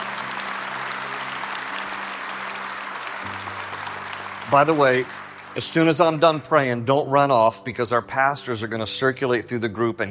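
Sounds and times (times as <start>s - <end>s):
audience applause: 0.0s - 6.9s
speech: 4.5s - 10.0s.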